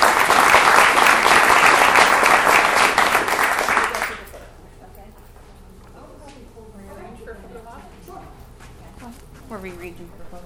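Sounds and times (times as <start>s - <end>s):
audience applause: 0.0s - 4.4s.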